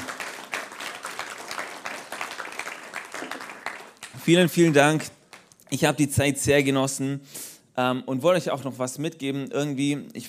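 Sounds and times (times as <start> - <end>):
audience applause: 0.0 - 5.5
speech: 4.2 - 10.2.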